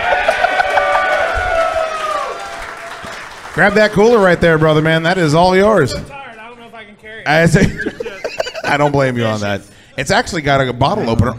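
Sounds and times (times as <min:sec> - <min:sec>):
laughter: 0:00.0 - 0:01.1, 0:07.4 - 0:09.1
audience applause: 0:00.0 - 0:05.1
speech: 0:03.6 - 0:06.2, 0:07.2 - 0:08.0, 0:08.7 - 0:11.3.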